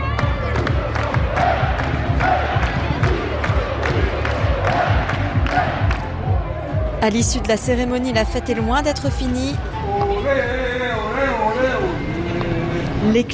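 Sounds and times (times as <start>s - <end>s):
steady rhythmic claps or thumps: 0.0s - 6.4s
crowd cheering and shouting at a supporters' celebration in French-speaking Switzerland: 0.0s - 12.4s
speech: 7.0s - 10.6s, 13.0s - 13.3s.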